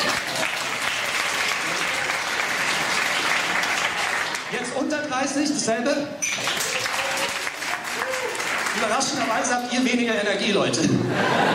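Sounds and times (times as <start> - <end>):
audience applause: 0.0 - 4.8, 6.3 - 9.6
speech: 5.1 - 7.0, 8.8 - 11.5
laughter: 10.8 - 11.5.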